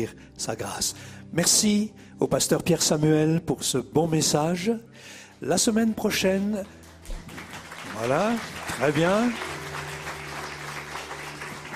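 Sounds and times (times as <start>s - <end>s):
speech: 0.0s - 7.2s, 8.0s - 9.5s
audience applause: 6.9s - 11.7s.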